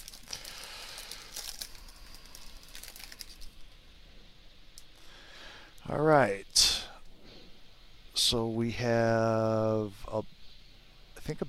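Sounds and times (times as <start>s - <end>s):
trading card pack wrapper crinkling: 0.0s - 3.8s
speech: 5.9s - 6.7s, 8.3s - 10.3s, 11.2s - 11.4s.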